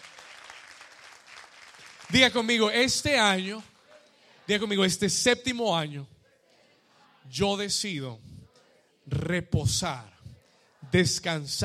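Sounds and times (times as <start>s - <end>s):
audience applauding: 0.0s - 3.2s
speech: 2.1s - 3.7s, 4.5s - 6.1s, 7.3s - 8.3s, 9.1s - 10.1s, 10.9s - 11.6s.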